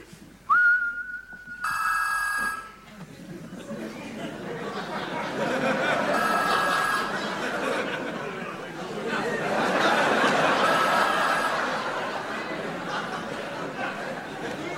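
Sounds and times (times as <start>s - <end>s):
chatter: 0.0s - 14.7s
steady whistle tone: 0.5s - 2.8s
electronic phone ringing: 1.6s - 2.8s, 6.0s - 7.2s, 10.5s - 11.8s
laughter: 2.8s - 14.7s.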